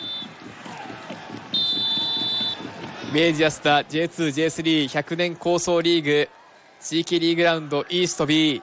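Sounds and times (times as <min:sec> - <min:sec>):
referee's final whistle: 0:00.0 - 0:00.4, 0:01.5 - 0:02.7
rhythmic thumping crowd noise: 0:00.0 - 0:06.1
speech: 0:03.1 - 0:08.6.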